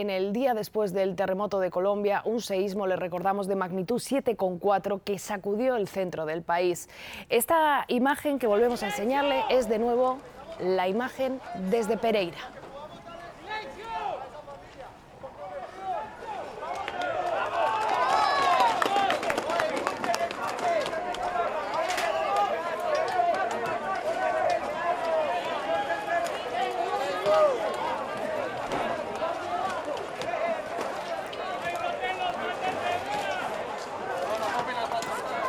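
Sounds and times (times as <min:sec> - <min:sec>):
speech: 0:00.0 - 0:12.6
excited crowd shouting: 0:08.5 - 0:35.4
crowd clapping: 0:12.4 - 0:35.4.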